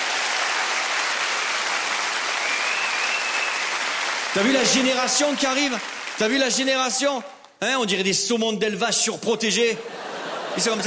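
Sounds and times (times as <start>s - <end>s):
audience applause: 0.0s - 6.7s
speech: 4.4s - 10.8s
laughter: 9.8s - 10.8s.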